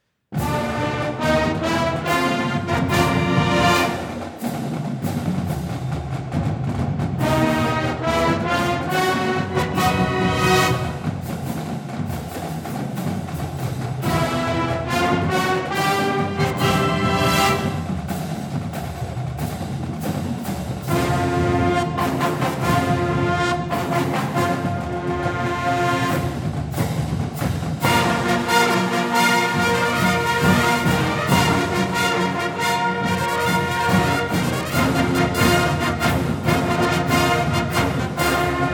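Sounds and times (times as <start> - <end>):
marching band playing a fanfare and fight song: 0.3 - 38.7.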